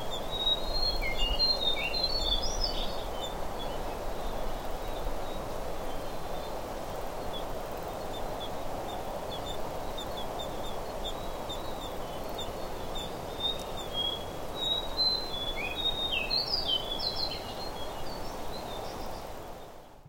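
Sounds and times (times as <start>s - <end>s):
forest ambience at Ijen volcano: 0.0s - 20.0s.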